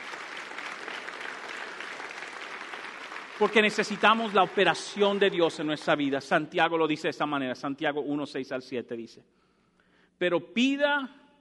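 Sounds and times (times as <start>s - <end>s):
audience applauding: 0.0s - 6.2s
speech: 3.4s - 9.4s, 10.2s - 11.2s.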